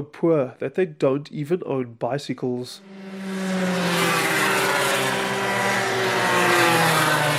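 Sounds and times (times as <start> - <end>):
speech: 0.0 - 3.2
small go-kart engines buzzing around a track: 2.8 - 7.3.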